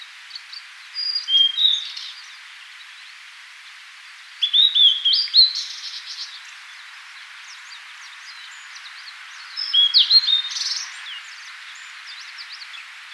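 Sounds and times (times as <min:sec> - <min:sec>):
Cyanoptila cyanomelana singing: 0:01.0 - 0:02.4, 0:04.4 - 0:06.9, 0:07.5 - 0:13.1.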